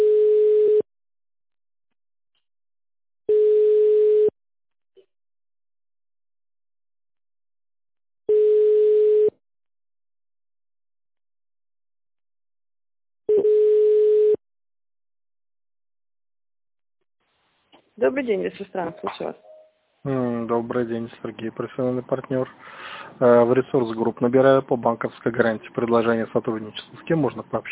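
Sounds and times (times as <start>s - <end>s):
telephone ringback tone while a call is being forwarded: 3.3s - 4.3s, 8.3s - 9.3s, 13.3s - 14.4s
speech: 18.0s - 27.6s.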